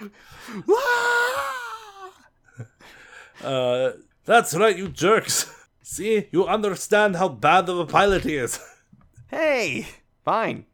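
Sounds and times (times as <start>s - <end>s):
speech: 0.0s - 1.5s, 3.4s - 10.7s
Wilhelm scream sound effect: 0.7s - 2.2s.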